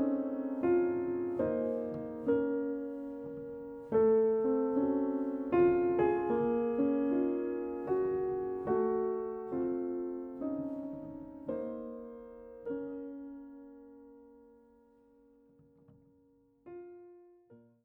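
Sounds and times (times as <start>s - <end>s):
waltz music: 0.0s - 12.6s.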